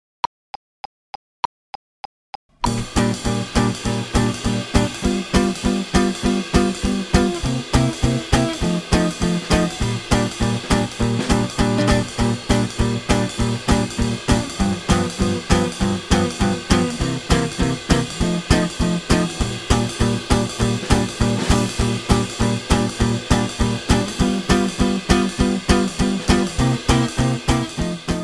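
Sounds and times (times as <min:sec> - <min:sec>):
swing music: 0:02.6 - 0:28.2.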